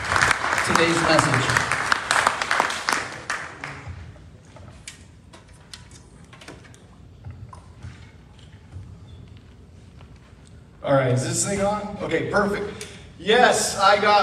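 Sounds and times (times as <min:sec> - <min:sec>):
church congregation applauding a guest speaker: 0:00.0 - 0:04.2
speech: 0:00.7 - 0:01.7, 0:11.1 - 0:14.2.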